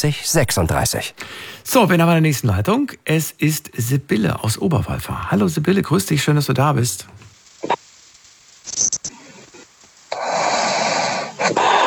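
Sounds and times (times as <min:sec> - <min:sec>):
speech: 0:00.0 - 0:07.8
long loud noisy breath with a hiss over a phone line: 0:01.1 - 0:01.8, 0:07.0 - 0:11.8
caller snoring over a narrow phone line: 0:10.1 - 0:11.8.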